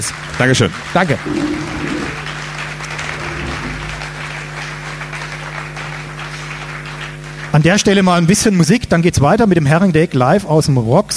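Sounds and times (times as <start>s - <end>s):
speech: 0.0s - 2.3s, 7.6s - 11.1s
audience applauding: 0.0s - 8.4s.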